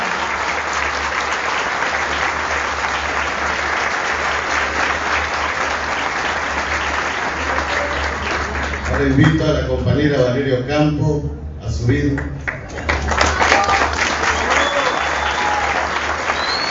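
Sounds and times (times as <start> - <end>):
audience applause at a political gathering: 0.0 - 9.5, 12.4 - 16.6
low steady hum: 8.4 - 13.2
speech: 9.0 - 12.4.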